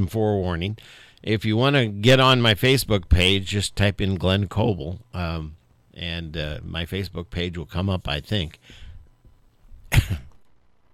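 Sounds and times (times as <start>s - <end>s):
speech: 0.0s - 8.8s, 9.9s - 10.2s
cough: 9.9s - 10.4s.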